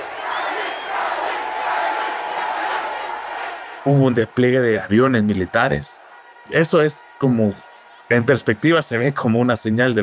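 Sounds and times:
whistles: 0.0s - 1.3s
large crowd shouting and cheering at a rally: 0.0s - 10.0s
speech: 3.8s - 10.0s.

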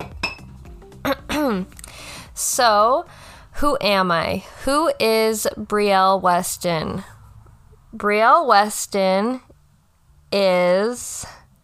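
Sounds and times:
glass clink: 0.0s - 0.6s
speech: 1.5s - 1.8s, 2.4s - 7.1s, 7.9s - 9.5s, 10.3s - 11.4s.

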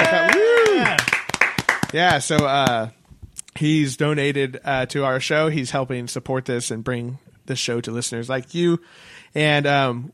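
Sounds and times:
hosts clapping: 0.0s - 2.9s
speech: 1.9s - 3.0s, 3.6s - 10.1s.

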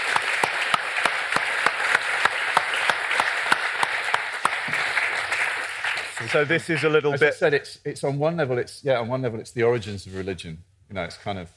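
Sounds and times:
applause: 0.0s - 7.0s
speech: 6.2s - 11.5s.

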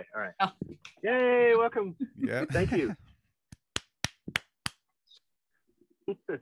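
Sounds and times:
speech: 0.0s - 3.0s, 6.1s - 6.4s
laughter: 2.0s - 3.0s
slow hand claps: 3.5s - 4.8s.

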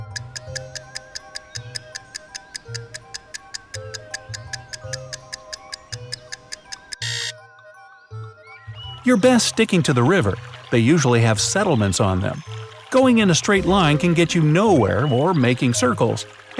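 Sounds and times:
countdown clock ticking: 0.0s - 7.3s
speech: 9.1s - 16.5s
low droning musical notes: 13.4s - 16.1s.

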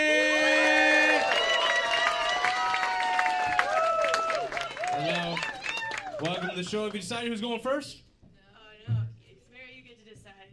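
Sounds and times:
audience applauding and cheering at a comedy roast battle: 0.0s - 7.4s
speech: 6.6s - 8.0s.

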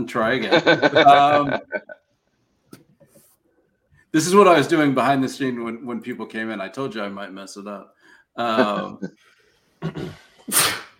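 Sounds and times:
speech: 0.0s - 2.0s, 4.1s - 10.8s
laughter: 0.4s - 2.0s, 8.4s - 9.1s
sneeze: 9.9s - 10.9s.

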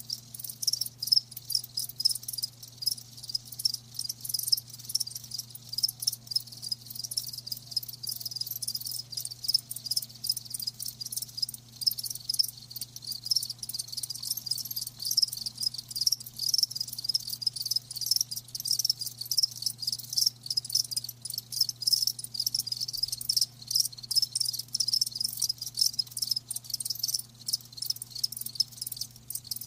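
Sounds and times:
crickets trilling: 0.0s - 29.6s.

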